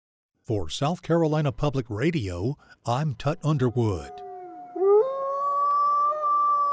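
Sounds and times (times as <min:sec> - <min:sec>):
speech: 0:00.5 - 0:04.2
wolf howling: 0:03.7 - 0:06.7.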